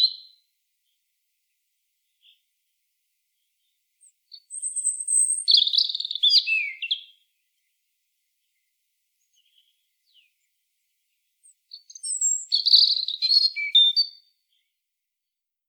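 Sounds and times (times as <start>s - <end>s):
European robin singing: 0.0s - 1.0s, 3.4s - 7.8s, 8.4s - 14.8s.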